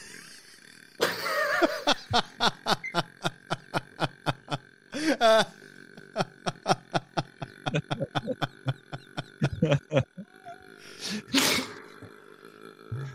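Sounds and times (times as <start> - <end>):
laughter: 0.0 - 10.6
speech: 1.6 - 3.1
breathy burst: 4.4 - 9.6, 10.4 - 13.1
woman burping: 6.5 - 13.1.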